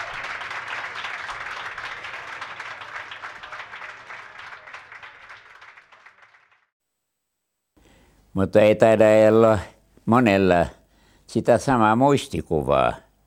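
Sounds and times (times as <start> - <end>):
audience applause: 0.0 - 6.7
speech: 8.4 - 13.0.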